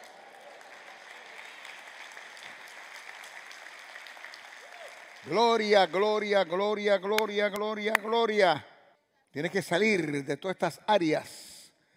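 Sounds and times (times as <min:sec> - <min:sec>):
audience applause: 0:00.0 - 0:06.6
speech: 0:05.2 - 0:08.7, 0:09.3 - 0:11.5.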